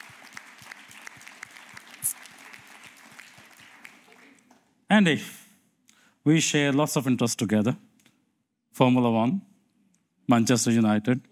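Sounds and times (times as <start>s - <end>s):
conference audience round of applause: 0.0s - 4.5s
speech: 4.9s - 5.4s, 6.3s - 7.9s, 8.8s - 9.5s, 10.3s - 11.3s.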